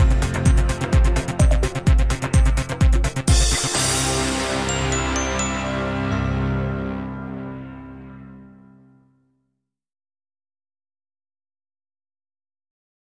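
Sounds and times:
promotional video background music: 0:00.0 - 0:09.2.

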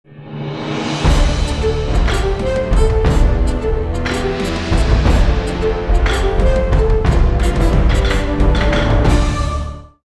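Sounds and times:
grand background music: 0:00.1 - 0:10.0.

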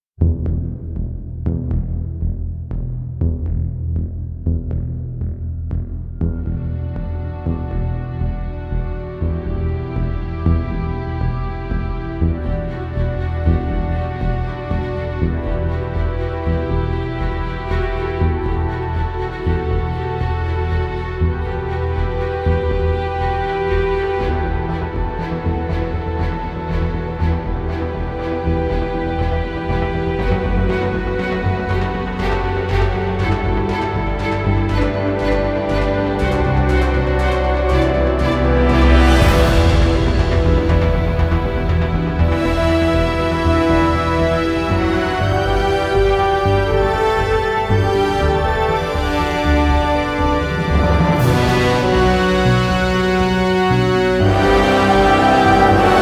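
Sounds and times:
bold heroic background music: 0:00.2 - 0:56.0.

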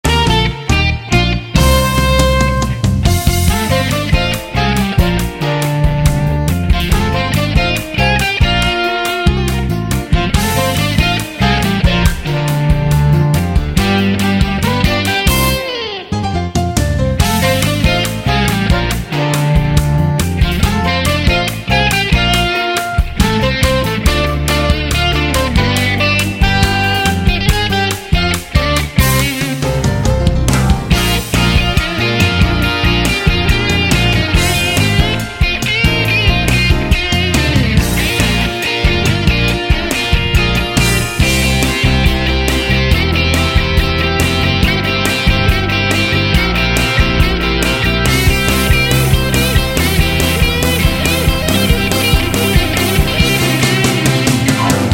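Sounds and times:
intro music: 0:00.0 - 0:54.9.

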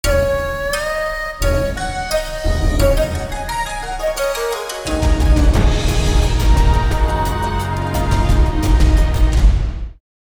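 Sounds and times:
grand background music: 0:00.0 - 0:10.0.

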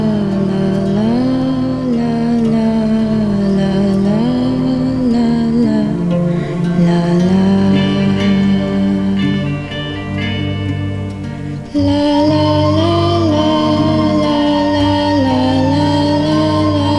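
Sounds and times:
film score music: 0:00.0 - 0:16.9.

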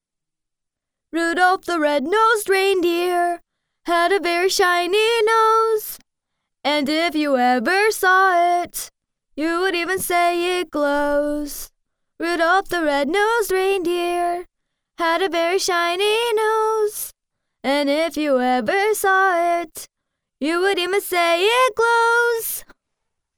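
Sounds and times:
foreign woman singing a children's song in American English: 0:01.2 - 0:06.0, 0:06.7 - 0:22.7.

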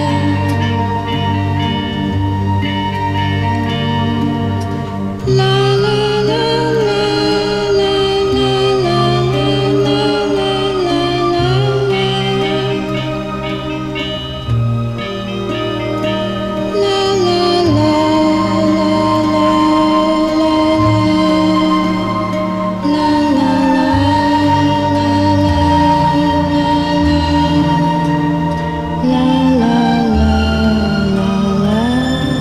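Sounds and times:
film music: 0:00.0 - 0:32.3.

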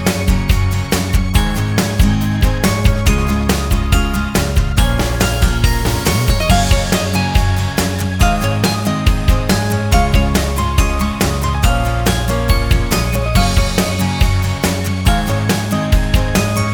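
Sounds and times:
cheerful background music: 0:00.0 - 0:16.7.

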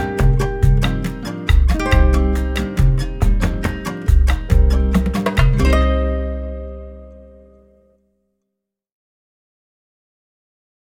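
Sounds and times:
advertisement music: 0:00.0 - 0:07.8.

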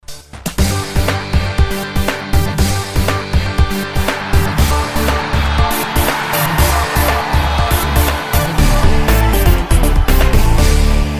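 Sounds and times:
cheerful background music: 0:00.1 - 0:11.1.

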